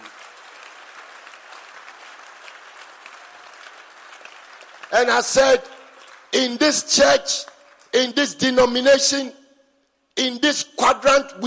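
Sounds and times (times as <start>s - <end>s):
audience clapping: 0.0s - 9.0s
speech: 4.9s - 5.7s, 6.3s - 9.4s, 10.2s - 11.4s.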